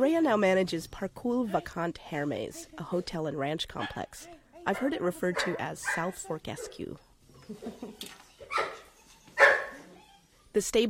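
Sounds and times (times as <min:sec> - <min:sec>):
speech: 0:00.0 - 0:08.8, 0:10.6 - 0:10.8
dog barking: 0:03.8 - 0:06.8, 0:08.5 - 0:09.9
dog whimpering yips: 0:08.0 - 0:10.5.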